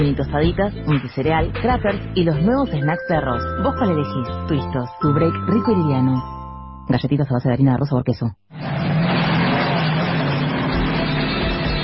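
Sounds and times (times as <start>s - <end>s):
speech: 0.0s - 6.3s, 6.9s - 9.0s
car engine revving: 8.6s - 11.8s.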